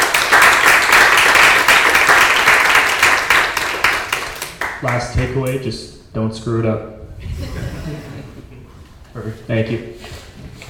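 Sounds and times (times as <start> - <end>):
audience applause: 0.0 - 5.1
speech: 4.9 - 8.1, 9.2 - 10.1
laughter: 7.2 - 8.9.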